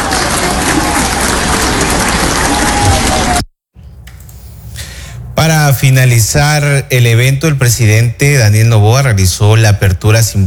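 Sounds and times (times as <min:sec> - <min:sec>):
audience applause: 0:00.0 - 0:03.5
speech: 0:05.4 - 0:10.4.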